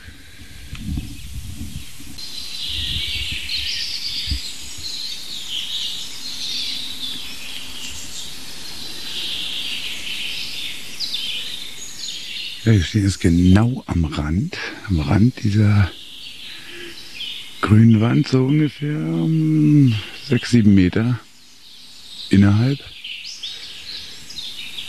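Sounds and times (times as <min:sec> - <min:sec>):
chaffinch song: 0:00.0 - 0:24.8
steady hiss: 0:00.0 - 0:24.8
speech: 0:12.7 - 0:16.0, 0:17.7 - 0:21.2, 0:22.3 - 0:23.0.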